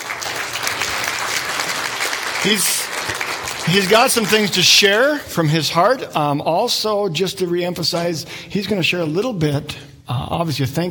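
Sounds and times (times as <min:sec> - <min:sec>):
crowd applauding: 0:00.0 - 0:05.2
speech: 0:02.4 - 0:03.0, 0:03.6 - 0:10.8.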